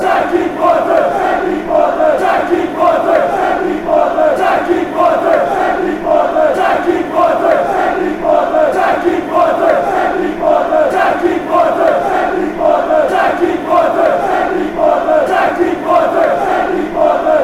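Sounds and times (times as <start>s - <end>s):
football supporters chanting: 0.0s - 17.4s.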